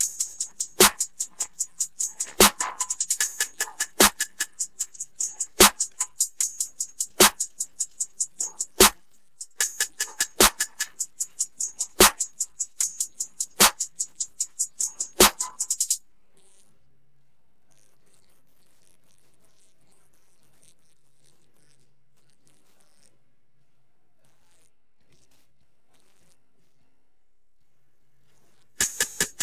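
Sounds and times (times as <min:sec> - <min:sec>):
drums: 0:00.0 - 0:16.0, 0:28.8 - 0:29.4.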